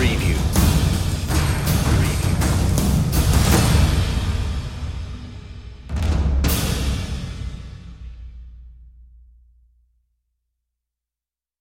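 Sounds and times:
percussion: 0.0s - 9.1s.

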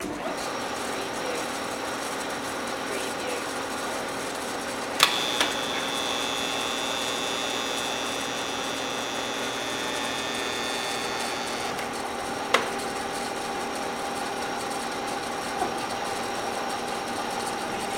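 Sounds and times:
radial drill running: 0.0s - 17.9s.

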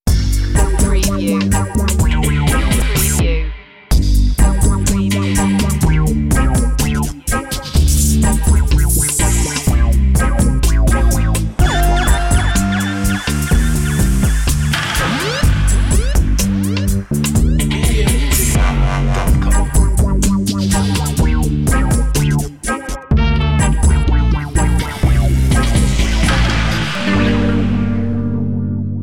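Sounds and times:
dub music: 0.0s - 29.0s.

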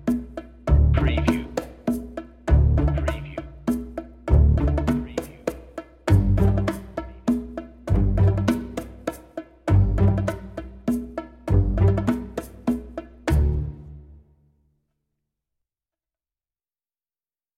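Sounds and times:
bass percussion: 0.0s - 13.9s.

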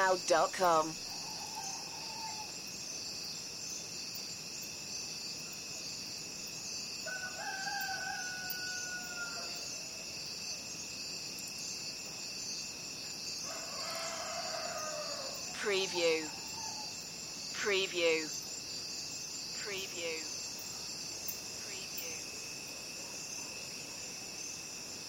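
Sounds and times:
crickets trilling: 0.0s - 25.0s
speech: 0.1s - 1.1s, 15.6s - 16.4s, 17.6s - 18.4s, 19.7s - 20.3s
rooster crowing: 1.2s - 2.5s, 7.0s - 9.8s, 13.4s - 15.5s.

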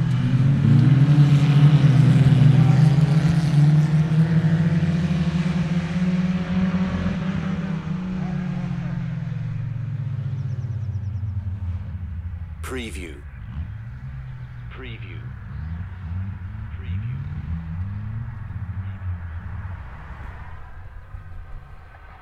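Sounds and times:
dirt track racing cars in the UK from a spectator's position: 0.0s - 22.1s.

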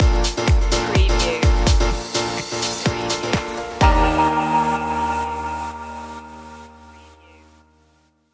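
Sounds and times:
summer clubbing stinger: 0.2s - 6.8s.

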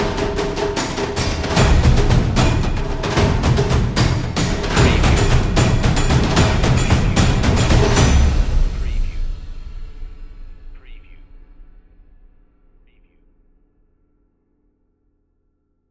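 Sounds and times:
dramatic percussion without drums: 0.0s - 12.7s.

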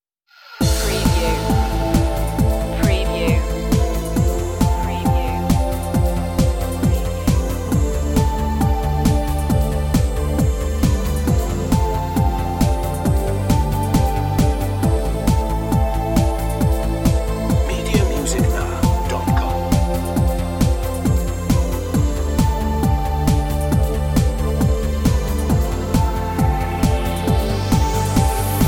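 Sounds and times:
instrumental music: 0.6s - 28.6s.

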